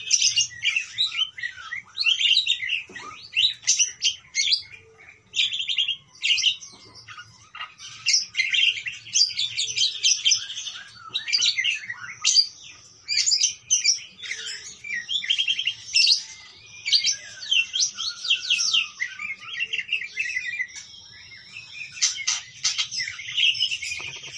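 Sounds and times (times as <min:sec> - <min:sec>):
parakeet chatter: 0:00.0 - 0:24.3.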